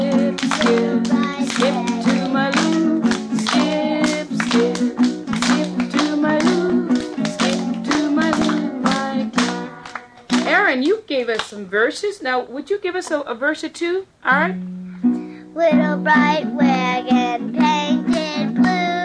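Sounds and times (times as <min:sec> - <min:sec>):
hands clapping out a song's rhythm: 0:00.0 - 0:11.6, 0:16.2 - 0:19.0
speech: 0:11.5 - 0:17.8.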